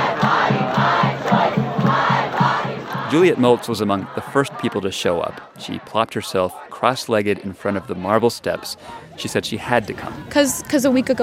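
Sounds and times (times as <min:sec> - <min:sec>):
low rhythmic pulse: 0:00.0 - 0:05.8
large crowd gathered outside a courthouse: 0:00.0 - 0:10.3
speech: 0:03.1 - 0:11.2.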